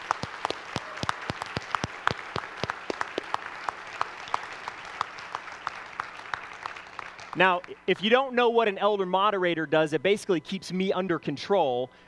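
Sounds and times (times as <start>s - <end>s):
audience applause: 0.0s - 8.0s
speech: 7.4s - 12.0s.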